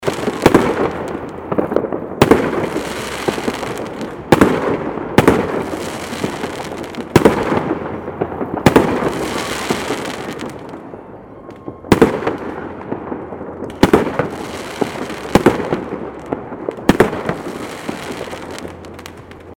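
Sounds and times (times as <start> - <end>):
fireworks: 0.0 - 19.5.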